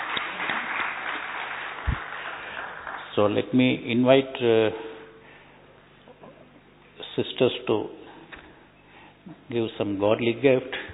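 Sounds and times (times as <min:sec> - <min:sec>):
crowd applause: 0:00.0 - 0:03.6
speech: 0:03.2 - 0:04.9, 0:07.2 - 0:08.0, 0:09.5 - 0:10.8.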